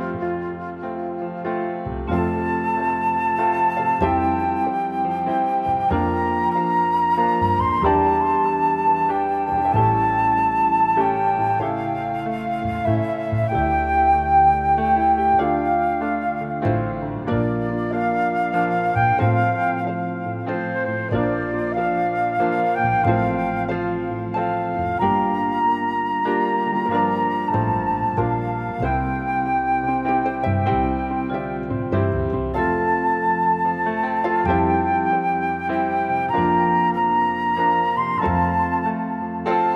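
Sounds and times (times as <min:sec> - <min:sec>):
acoustic instrumental praise music: 0:00.0 - 0:39.7.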